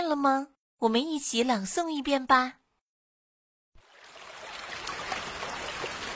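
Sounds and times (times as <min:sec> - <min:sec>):
speech: 0:00.1 - 0:02.6
rain falling: 0:03.8 - 0:06.1.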